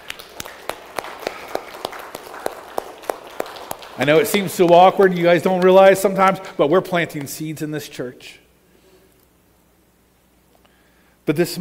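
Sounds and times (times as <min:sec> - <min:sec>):
audience clapping in rhythm: 0:00.0 - 0:06.2
speech: 0:04.0 - 0:08.4, 0:11.3 - 0:11.5.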